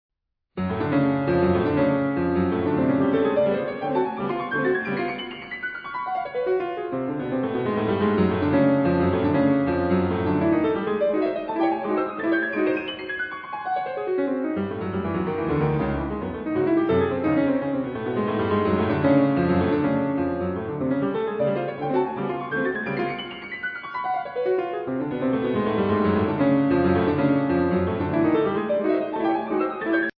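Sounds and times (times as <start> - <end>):
piano bagatelles and impromptus: 0.6 - 30.1.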